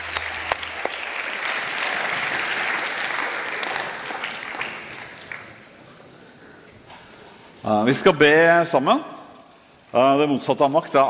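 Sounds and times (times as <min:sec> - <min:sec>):
audience applause: 0:00.0 - 0:06.4
speech: 0:07.6 - 0:09.1, 0:09.9 - 0:11.0.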